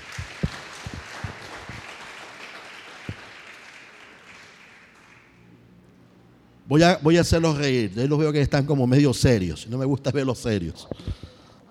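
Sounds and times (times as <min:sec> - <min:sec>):
audience applause: 0:00.0 - 0:05.3
speech: 0:06.7 - 0:11.2.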